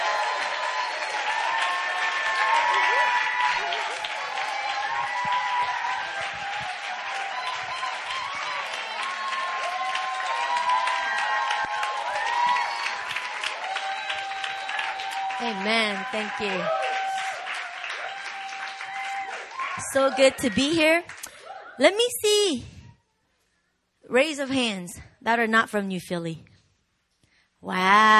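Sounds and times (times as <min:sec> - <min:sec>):
audience applause and cheering welcoming a pastor at an evening ministry gathering: 0:00.0 - 0:21.7
speech: 0:15.6 - 0:16.8, 0:19.9 - 0:21.1, 0:21.8 - 0:22.7, 0:24.1 - 0:26.5, 0:27.6 - 0:28.1.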